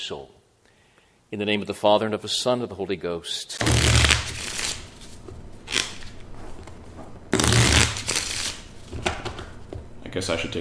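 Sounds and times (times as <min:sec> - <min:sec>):
speech: 0:00.0 - 0:00.4, 0:01.3 - 0:04.0, 0:10.2 - 0:10.5
shuffling a deck of playing cards: 0:03.6 - 0:09.6.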